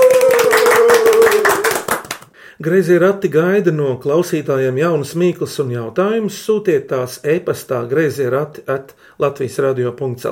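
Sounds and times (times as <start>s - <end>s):
applause: 0.0s - 2.4s
speech: 2.6s - 10.3s.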